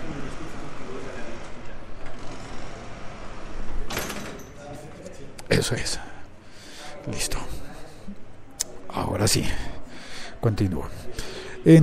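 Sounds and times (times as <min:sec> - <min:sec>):
door being closed: 0:03.8 - 0:04.6
speech: 0:05.6 - 0:06.1, 0:07.1 - 0:07.5, 0:09.2 - 0:09.7, 0:10.4 - 0:11.8.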